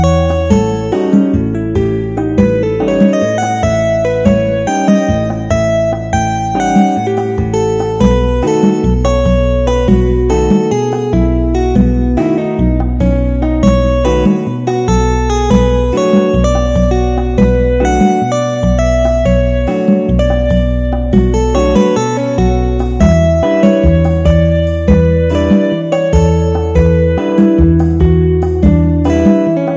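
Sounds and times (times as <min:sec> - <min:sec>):
music in mixolydian mode: 0:00.0 - 0:29.7.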